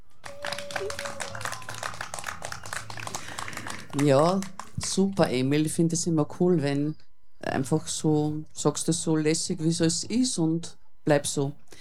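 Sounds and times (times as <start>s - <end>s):
applause: 0.0s - 5.2s
speech: 0.8s - 1.2s, 3.9s - 11.8s.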